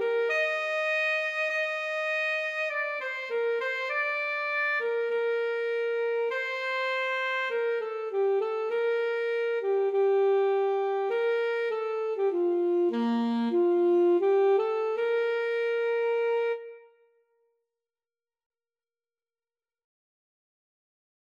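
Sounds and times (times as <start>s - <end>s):
alto saxophone duet: 0.0s - 17.1s.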